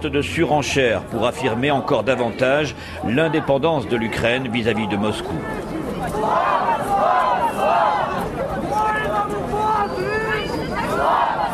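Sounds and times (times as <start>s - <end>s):
speech: 0.0s - 7.1s
nationalists shouting slogans in the streets of Kiev: 1.3s - 11.5s.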